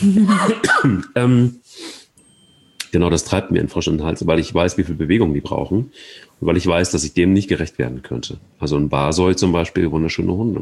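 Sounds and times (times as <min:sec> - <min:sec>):
speech: 0:00.0 - 0:01.9, 0:02.9 - 0:10.5
person clearing throat: 0:00.2 - 0:01.6.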